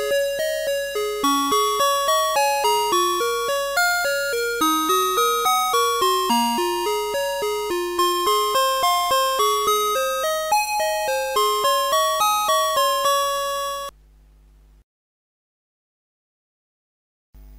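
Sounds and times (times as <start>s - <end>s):
A chord: 0.0s - 13.9s.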